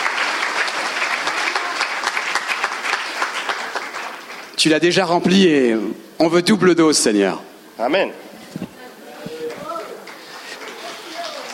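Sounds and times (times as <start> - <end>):
audience applause: 0.0 - 4.6, 9.4 - 11.5
speech: 4.6 - 8.2.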